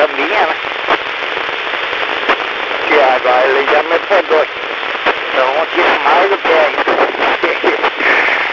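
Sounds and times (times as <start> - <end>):
military satellite FM radio signal: 0.0 - 8.4.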